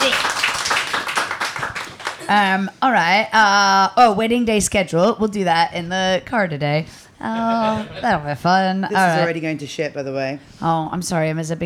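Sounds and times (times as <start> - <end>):
round of applause, hand clapping: 0.0 - 2.3
speech: 2.3 - 11.6.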